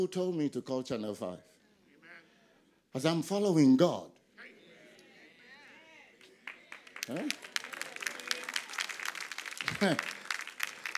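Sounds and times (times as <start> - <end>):
speech: 0.0 - 1.6, 2.9 - 4.2, 7.1 - 7.5, 9.8 - 10.2
audience clapping: 6.2 - 10.9
laughter: 9.4 - 10.9.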